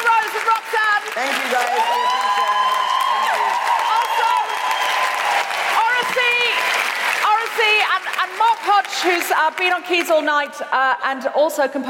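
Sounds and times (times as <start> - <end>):
live show audience clapping: 0.0 - 10.6
high whoops sliding downward in pitch: 1.6 - 6.8
speech: 9.0 - 11.8.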